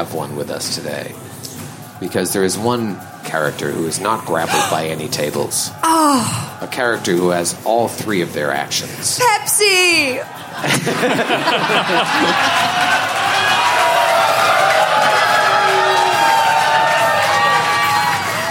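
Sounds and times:
speech: 0:00.0 - 0:01.3, 0:02.0 - 0:12.9
laughter: 0:04.1 - 0:05.1, 0:10.1 - 0:13.3
live audience cheering and whooping: 0:04.2 - 0:04.9, 0:11.4 - 0:18.5.

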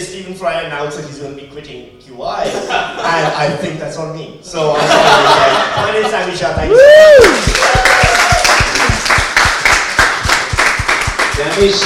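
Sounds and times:
speech: 0:00.0 - 0:07.9, 0:11.4 - 0:11.8
laughter: 0:02.4 - 0:03.8, 0:04.7 - 0:06.6
crowd applause: 0:07.0 - 0:11.8.

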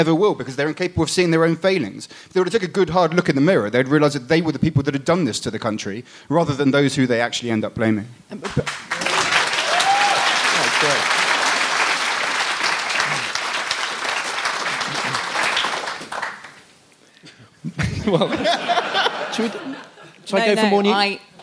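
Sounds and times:
speech: 0:00.0 - 0:09.3, 0:18.1 - 0:18.6, 0:19.4 - 0:21.3
crowd clapping: 0:08.4 - 0:16.7
people chuckling: 0:12.9 - 0:13.4, 0:14.7 - 0:15.5, 0:17.6 - 0:20.3.

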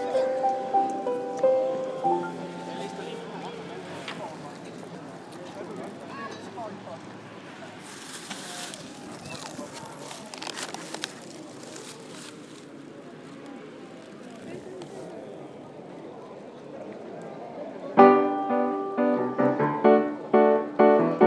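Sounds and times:
piano: 0:00.0 - 0:03.9, 0:18.0 - 0:21.2.

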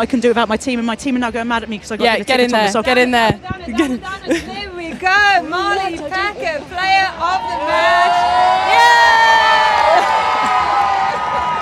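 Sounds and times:
speech: 0:00.0 - 0:09.7
crowd cheering: 0:07.2 - 0:11.6.

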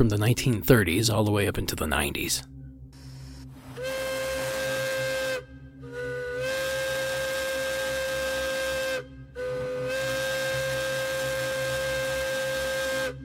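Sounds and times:
speech: 0:00.0 - 0:02.5
Hancock air whistle on a train: 0:03.0 - 0:13.2.

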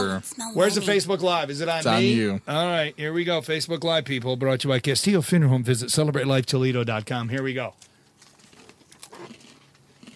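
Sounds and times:
speech: 0:00.0 - 0:07.9
crunchy wet chewing: 0:07.7 - 0:10.1.

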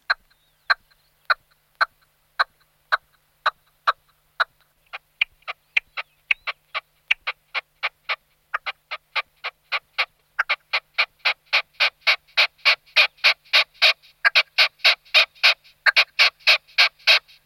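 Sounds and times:
red-legged partridge calling: 0:00.0 - 0:17.4.

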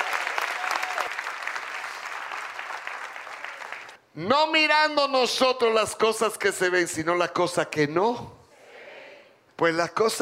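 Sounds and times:
loud applause: 0:00.0 - 0:04.0
speech: 0:04.2 - 0:08.4, 0:09.6 - 0:10.2.

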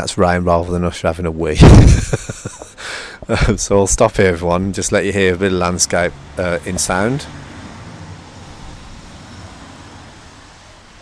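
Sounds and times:
speech: 0:00.0 - 0:02.6, 0:03.2 - 0:07.5
laughter: 0:01.6 - 0:04.0
car driving past from left to right: 0:04.5 - 0:10.9.

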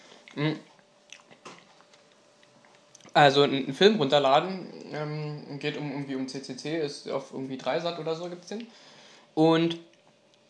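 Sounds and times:
person chewing with soft wet and crunchy bites: 0:00.2 - 0:03.2
speech: 0:00.4 - 0:00.7, 0:03.2 - 0:09.9.

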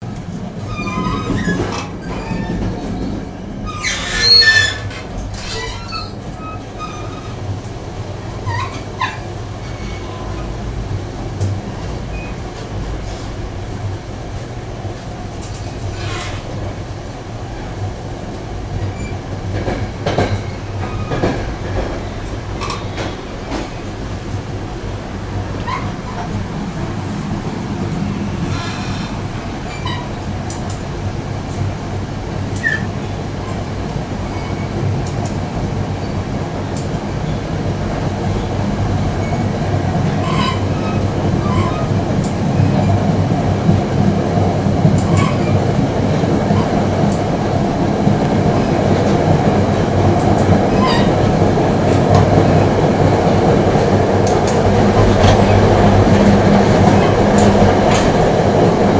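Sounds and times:
train motion sounds leaving Grand Central Station: 0:00.0 - 0:58.9
train squeaks and squeals leaving Grand Central Station: 0:00.6 - 0:10.5, 0:12.1 - 0:12.4, 0:15.6 - 0:16.7, 0:18.8 - 0:23.8, 0:25.6 - 0:26.4, 0:28.4 - 0:30.3, 0:32.6 - 0:33.6, 0:34.2 - 0:34.9, 0:39.1 - 0:43.1, 0:45.0 - 0:45.7, 0:50.4 - 0:51.3, 0:54.5 - 0:58.8.

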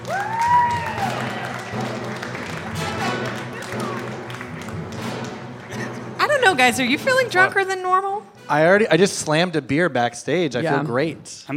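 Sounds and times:
whistle or whoop from crowd: 0:00.0 - 0:01.3
cheering voices: 0:00.0 - 0:04.6
crowd applauding: 0:00.0 - 0:06.6
speech: 0:06.5 - 0:11.5.

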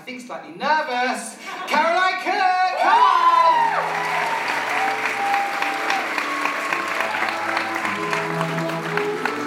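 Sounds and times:
speech: 0:00.1 - 0:02.4
audience applause welcoming a speaker onto the stage: 0:02.8 - 0:09.4.

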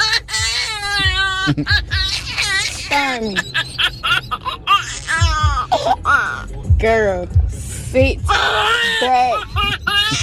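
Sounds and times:
children laughing: 0:00.9 - 0:05.6, 0:08.4 - 0:10.2
speech: 0:01.5 - 0:01.9, 0:02.9 - 0:04.7, 0:05.8 - 0:10.2.

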